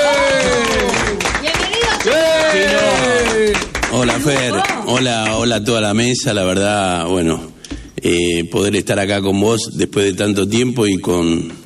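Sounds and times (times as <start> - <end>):
applause: 0.0 - 5.6
speech: 4.1 - 11.6.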